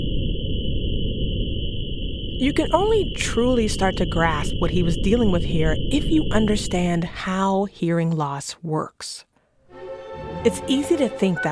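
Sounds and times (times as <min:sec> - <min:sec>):
high ringing tone simulating tinnitus: 0:00.0 - 0:07.1
speech: 0:02.4 - 0:09.3, 0:10.4 - 0:11.5.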